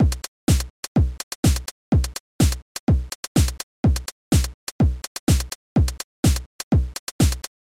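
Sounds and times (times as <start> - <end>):
rhythm: 0.0 - 7.5.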